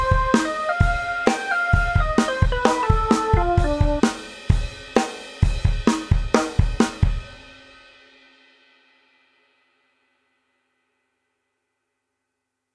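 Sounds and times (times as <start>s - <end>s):
sample drum: 0.0s - 7.7s.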